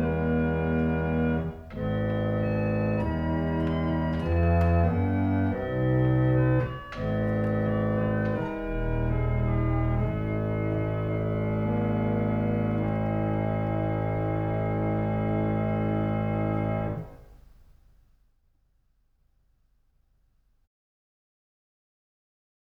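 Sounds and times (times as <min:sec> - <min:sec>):
harmonium: 0:00.0 - 0:17.2.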